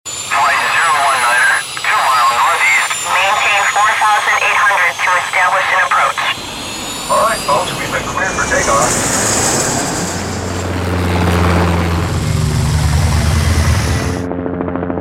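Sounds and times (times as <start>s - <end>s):
transportation sounds: 0.2s - 14.3s.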